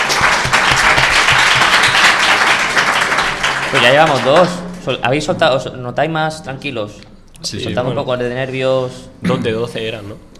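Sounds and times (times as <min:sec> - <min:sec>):
audience applause: 0:00.0 - 0:04.9
speech: 0:03.7 - 0:10.3.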